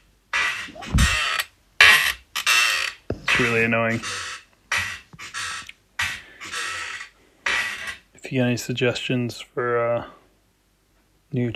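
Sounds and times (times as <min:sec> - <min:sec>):
chair creaking as someone shifts weight: 0:00.4 - 0:08.0
dull thump: 0:00.7 - 0:01.2
speech: 0:03.4 - 0:04.3, 0:08.3 - 0:10.2, 0:11.3 - 0:11.5.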